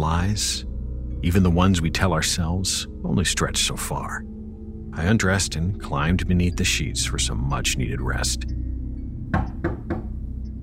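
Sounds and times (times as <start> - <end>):
low steady hum: 0.0 - 10.6
speech: 0.2 - 4.3, 5.0 - 8.6
firm knocks on a door: 9.3 - 10.2.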